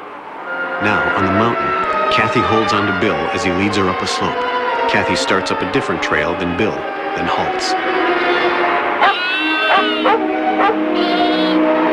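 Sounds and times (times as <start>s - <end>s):
speech: 0.8s - 8.7s, 10.0s - 11.9s
newborn lamb bleating: 8.3s - 10.2s, 11.0s - 11.6s.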